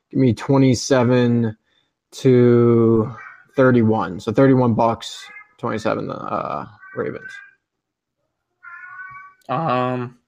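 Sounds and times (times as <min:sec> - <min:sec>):
speech: 0:00.2 - 0:07.5, 0:09.5 - 0:10.2
cat yowling: 0:03.1 - 0:03.6, 0:06.6 - 0:07.6, 0:08.6 - 0:09.5.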